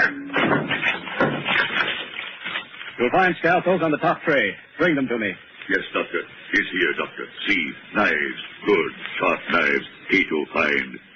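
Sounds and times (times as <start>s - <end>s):
locked cabinet being smashed open: 0.2s - 2.7s
speech: 3.0s - 11.1s.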